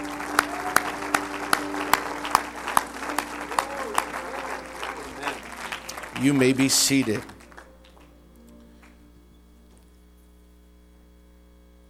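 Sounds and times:
audience hand clapping: 0.0 - 9.1
speech: 6.2 - 7.3.

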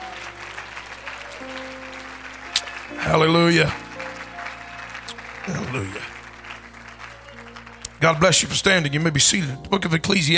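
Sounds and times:
audience shouting: 0.0 - 8.1
audience clapping: 0.0 - 9.5
speech: 1.4 - 1.8, 2.9 - 3.8, 5.5 - 6.1, 8.0 - 10.3.

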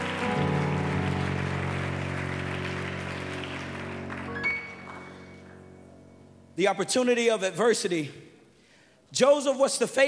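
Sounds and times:
audience clapping hands: 0.0 - 5.6
speech: 6.6 - 8.3, 9.1 - 10.0.

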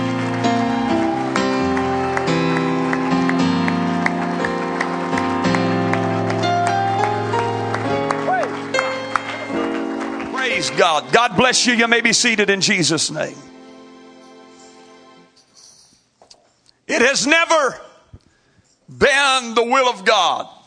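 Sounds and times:
audience hand clapping in praise: 0.0 - 12.1
speech: 10.8 - 13.5, 17.0 - 17.9, 18.9 - 20.6.

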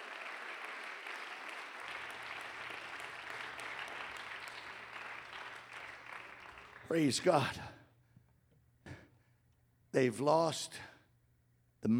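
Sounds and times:
audience clapping hands: 0.0 - 7.7
speech: 6.9 - 7.7, 10.0 - 10.9.

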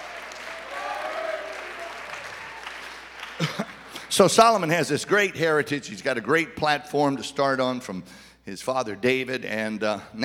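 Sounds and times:
audience clapping and praising: 0.0 - 4.7
speech: 3.4 - 10.2.

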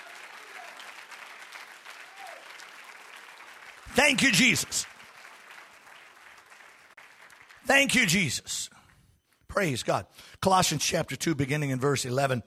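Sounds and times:
crowd audience clapping hands: 0.0 - 8.4
speech: 3.9 - 4.9, 7.7 - 8.8, 9.5 - 12.4.

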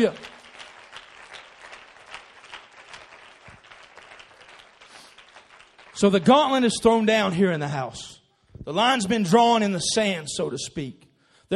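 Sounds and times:
speech: 0.0 - 0.2, 6.0 - 11.5
audience hand clapping: 0.0 - 7.3.

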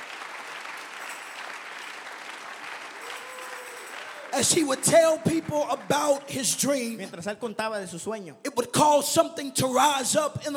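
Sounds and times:
audience clapping hands: 0.0 - 7.2
speech: 4.4 - 10.5.

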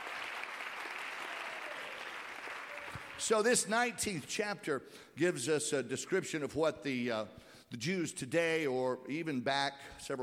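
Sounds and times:
roomful of people clapping: 0.0 - 3.5
speech: 3.2 - 10.2.

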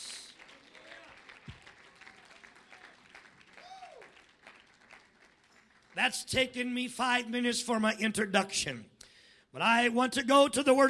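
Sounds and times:
audience clapping hands: 0.0 - 6.7
speech: 6.0 - 8.9, 9.5 - 10.8.

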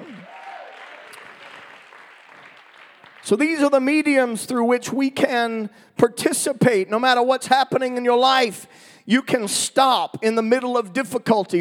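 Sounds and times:
worshippers clapping their hands in praise: 0.0 - 4.1
speech: 3.2 - 11.5.

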